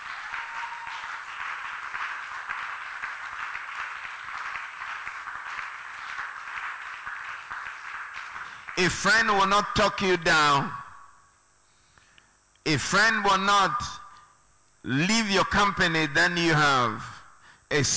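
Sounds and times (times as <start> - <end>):
audience clapping: 0.0 - 9.1
speech: 8.8 - 10.8, 12.7 - 14.0, 14.8 - 17.1, 17.7 - 17.9.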